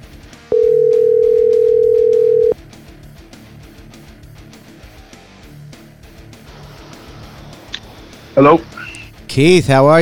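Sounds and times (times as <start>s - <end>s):
outgoing telephone call ringing tone: 0.5s - 2.6s
speech: 8.4s - 8.7s, 9.4s - 10.0s.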